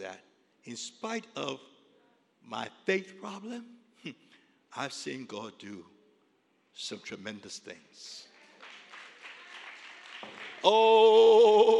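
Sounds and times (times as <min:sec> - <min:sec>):
speech: 0:00.1 - 0:01.7, 0:02.4 - 0:06.0, 0:06.8 - 0:08.3, 0:10.2 - 0:11.7
audience clapping: 0:08.3 - 0:11.7.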